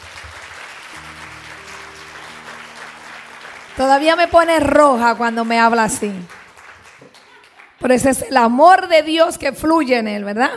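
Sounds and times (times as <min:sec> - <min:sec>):
people applauding: 0:00.0 - 0:08.3
speech: 0:03.8 - 0:06.4, 0:07.8 - 0:10.5.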